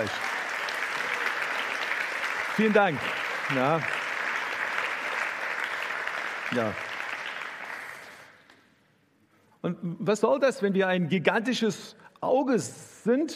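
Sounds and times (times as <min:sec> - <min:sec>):
speech: 0:00.0 - 0:00.3, 0:02.6 - 0:04.0, 0:06.5 - 0:06.9, 0:09.6 - 0:13.3
audience applause: 0:00.0 - 0:08.4.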